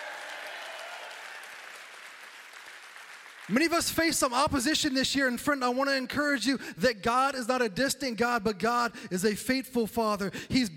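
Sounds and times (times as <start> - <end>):
church congregation applauding during a Sunday morning service: 0.0 - 4.7
speech: 3.5 - 10.7.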